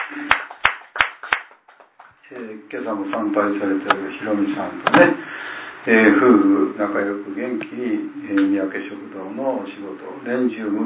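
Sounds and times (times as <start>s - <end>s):
hand clapping at a religious gathering honouring a 71st birthday: 0.0s - 2.2s
speech: 2.3s - 10.8s.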